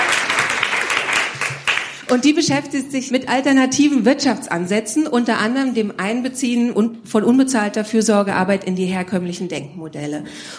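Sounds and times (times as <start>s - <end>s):
audience applause: 0.0s - 2.2s
speech: 2.1s - 10.5s.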